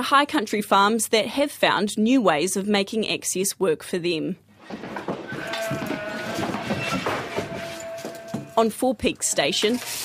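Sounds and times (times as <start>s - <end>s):
speech: 0.0s - 4.9s, 8.6s - 10.0s
ewes bleating during shearing on Four Peaks Station high country farm: 5.3s - 8.7s.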